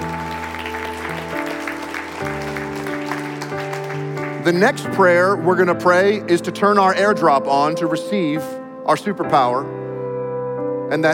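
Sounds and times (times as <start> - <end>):
audience clapping: 0.0 - 5.2
speech: 4.4 - 9.8, 10.9 - 11.1.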